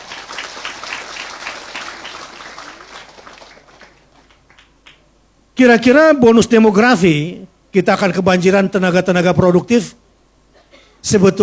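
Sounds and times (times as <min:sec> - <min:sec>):
audience applause greeting an ustaz: 0:00.0 - 0:05.0
speech: 0:05.6 - 0:10.0, 0:11.0 - 0:11.4.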